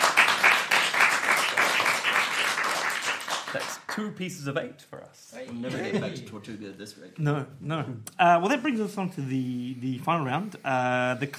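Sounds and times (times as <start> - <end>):
audience applause: 0.0 - 4.0
speech: 3.5 - 11.3.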